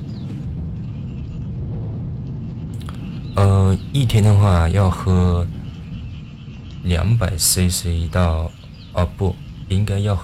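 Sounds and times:
thunder rumbling: 0:00.0 - 0:10.2
speech: 0:03.4 - 0:05.6, 0:06.8 - 0:10.2.

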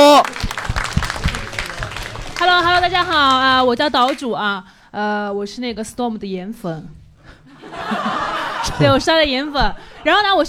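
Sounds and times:
laughter: 0:00.0 - 0:03.4, 0:07.5 - 0:10.4
audience applause: 0:00.0 - 0:04.2
speech: 0:02.8 - 0:07.0, 0:07.6 - 0:10.4.

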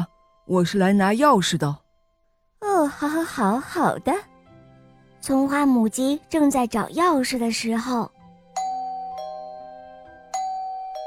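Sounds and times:
speech: 0:00.5 - 0:01.8, 0:02.9 - 0:04.3, 0:05.2 - 0:08.2
doorbell ringing: 0:08.6 - 0:11.0.

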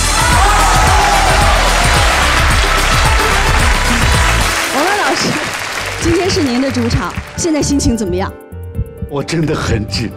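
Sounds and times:
audience applause and cheering: 0:00.0 - 0:07.8
speech: 0:06.4 - 0:08.5, 0:09.1 - 0:10.1.

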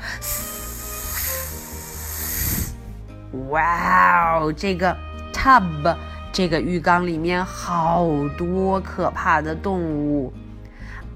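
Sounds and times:
snake hissing: 0:00.0 - 0:03.0
soft music: 0:00.0 - 0:11.1
speech: 0:03.3 - 0:10.4.

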